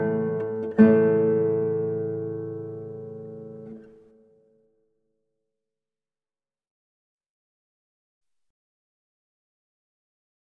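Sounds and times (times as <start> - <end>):
sarabande in A major on guitar: 0.0 - 4.4.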